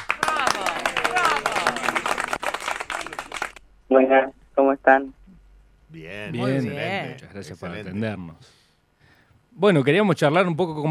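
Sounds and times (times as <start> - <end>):
hand clapping: 0.0 - 3.6
speech: 3.9 - 5.2, 5.9 - 8.6, 9.6 - 10.9.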